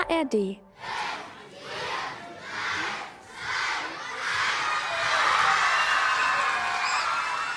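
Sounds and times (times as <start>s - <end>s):
speech: 0.1s - 1.0s
hundreds of children shouting a countdown in unison: 0.7s - 5.9s
large crowd of children cheering: 3.6s - 7.5s.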